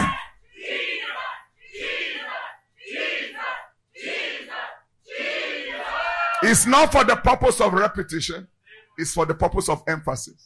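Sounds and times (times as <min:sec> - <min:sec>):
audience shouting a name: 0:00.0 - 0:06.7
speech: 0:06.4 - 0:10.4.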